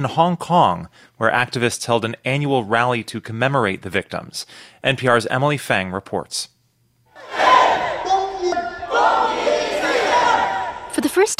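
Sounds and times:
speech: 0:00.0 - 0:06.5, 0:11.1 - 0:11.3
large protest crowd shouting slogans in unison: 0:07.2 - 0:11.0.

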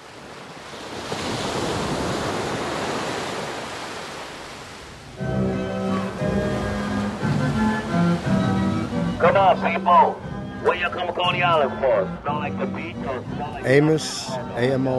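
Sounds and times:
ocean surf hitting the shore: 0:00.0 - 0:14.9
speech: 0:09.2 - 0:14.9.

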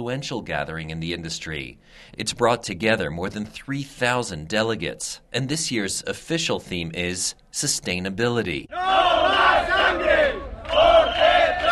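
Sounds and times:
speech: 0:00.0 - 0:11.7
demonstrators shouting a protest slogan outside delegates' hotels: 0:08.7 - 0:11.7.

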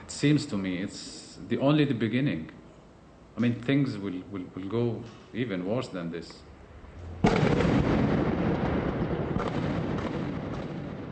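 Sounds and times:
speech: 0:00.2 - 0:02.6, 0:03.4 - 0:06.5
gunfire and explosions during fighting in central Gaza City: 0:07.2 - 0:11.0.

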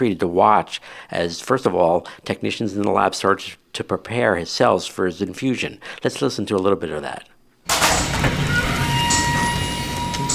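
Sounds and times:
speech: 0:00.0 - 0:07.3
huge metal tank in a hospital lab being pulled open: 0:07.7 - 0:10.3.

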